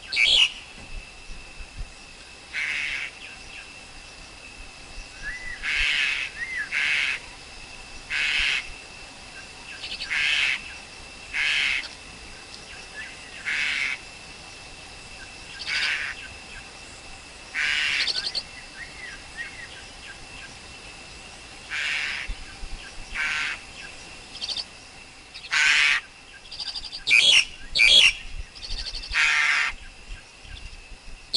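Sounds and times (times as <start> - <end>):
Black-collared Starling harsh grating calls: 0.0 - 0.6, 2.5 - 3.5, 5.2 - 7.4, 8.0 - 8.8, 9.4 - 12.0, 12.8 - 14.2, 15.2 - 16.8, 17.5 - 20.6, 21.6 - 24.7, 25.3 - 29.9.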